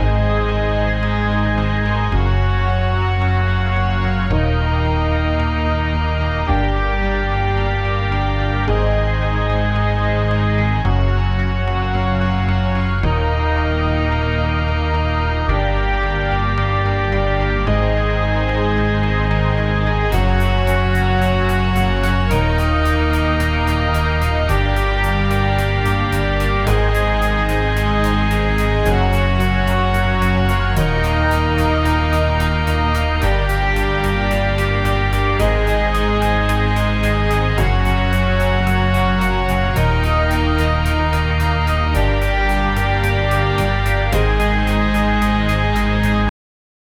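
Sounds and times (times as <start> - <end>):
professional news background music: 0.0 - 46.3.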